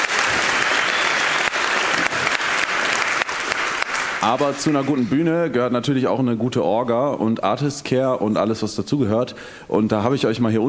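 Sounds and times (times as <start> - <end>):
crowd applauding: 0.0 - 5.4
speech: 4.2 - 10.6.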